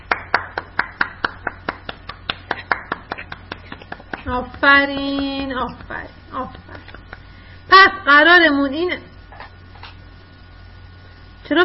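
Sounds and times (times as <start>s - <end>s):
children clapping for themselves: 0.0s - 6.0s
speech: 4.3s - 6.7s, 8.0s - 9.1s, 11.5s - 11.6s.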